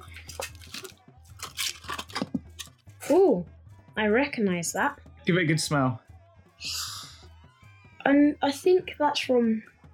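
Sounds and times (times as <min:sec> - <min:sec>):
foil crinkled and torn off a small pot of spice: 0:00.2 - 0:02.7
speech: 0:03.1 - 0:06.0, 0:08.0 - 0:09.7.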